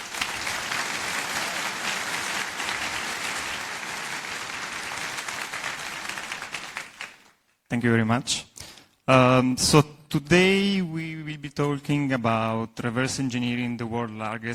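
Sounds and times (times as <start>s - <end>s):
audience applause: 0.0s - 7.4s
speech: 7.7s - 8.5s, 9.1s - 14.5s.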